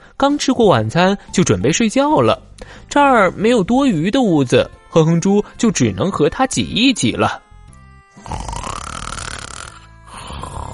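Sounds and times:
speech: 0.2 - 7.4
man snoring loudly: 8.2 - 10.7.

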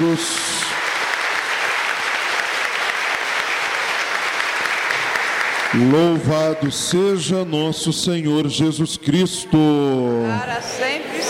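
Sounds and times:
speech: 0.0 - 0.5, 5.7 - 11.2
audience applause: 0.0 - 7.5.

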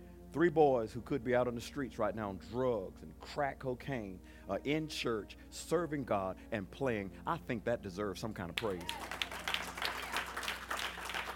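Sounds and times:
speech: 0.4 - 9.2
audience clapping: 8.6 - 11.3.

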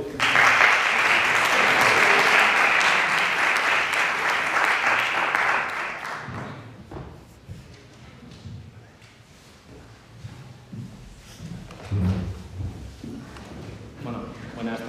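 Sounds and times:
applause: 0.0 - 6.8.

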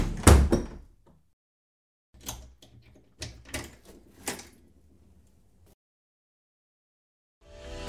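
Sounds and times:
door thump: 0.0 - 0.9.

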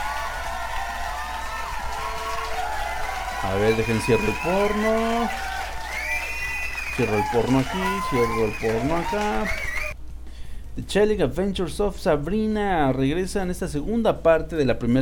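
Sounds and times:
applause: 0.0 - 10.0
speech: 3.4 - 5.5, 7.0 - 9.7, 10.8 - 15.0.

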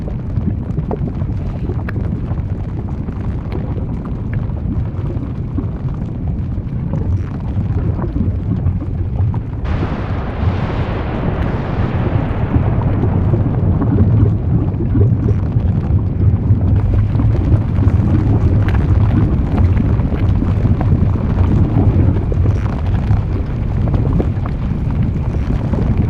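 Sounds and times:
lava and volcanic eruption rumble: 0.0 - 26.0
hissing surge: 9.7 - 15.5.

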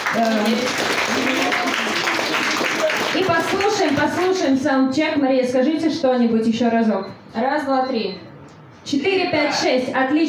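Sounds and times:
audience clapping: 0.0 - 4.5
speech: 0.1 - 1.3, 3.2 - 10.2.

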